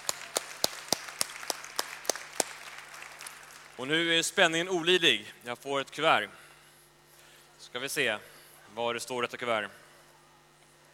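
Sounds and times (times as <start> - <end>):
steady evenly spaced hand claps: 0.0 - 3.8
faint low hum: 0.0 - 10.9
speech: 3.8 - 6.4, 7.7 - 9.8.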